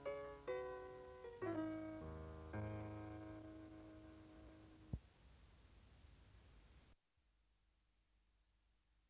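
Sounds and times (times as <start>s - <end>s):
solo piano: 0.0s - 5.0s.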